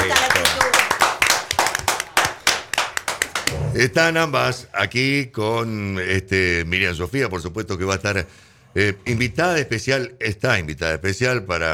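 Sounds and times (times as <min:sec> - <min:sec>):
people clapping in studio: 0:00.0 - 0:03.7
speech: 0:03.8 - 0:11.7.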